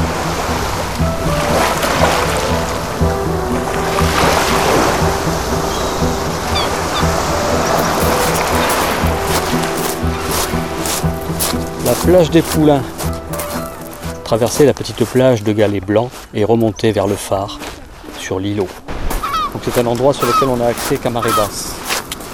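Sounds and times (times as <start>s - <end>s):
ocean surf roaring: 0.0s - 15.2s, 20.1s - 22.3s
speech: 12.0s - 13.0s, 14.3s - 17.6s, 18.3s - 18.9s, 19.6s - 21.8s.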